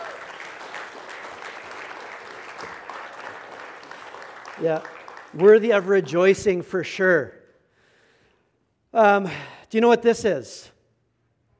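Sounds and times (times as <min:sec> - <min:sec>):
audience applause: 0:00.0 - 0:06.4
speech: 0:04.6 - 0:07.4, 0:09.0 - 0:10.8.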